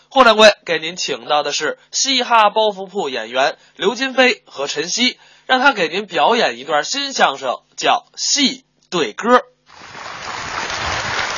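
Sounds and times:
speech: 0.2 - 9.5
warm audience applause: 9.7 - 11.3.

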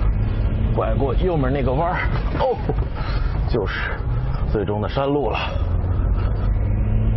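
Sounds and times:
SUV 2.7-litre engine straining uphill: 0.0 - 7.1
speech: 0.8 - 5.6.

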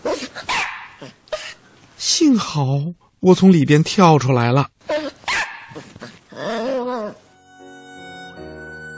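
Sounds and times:
small dog barking: 0.0 - 1.2, 4.9 - 7.2
speech: 2.1 - 4.8
soft steady musical tone: 7.2 - 8.9.

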